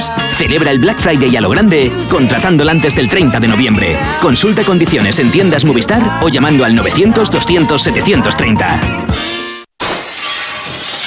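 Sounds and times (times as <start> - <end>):
speech: 0.0 - 9.4
glass shattering: 9.8 - 11.0.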